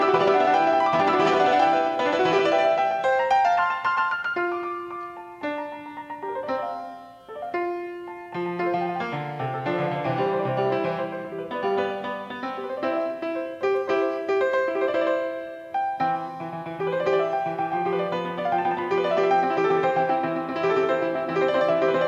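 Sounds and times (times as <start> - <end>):
Disklavier player piano: 0.0 - 22.0.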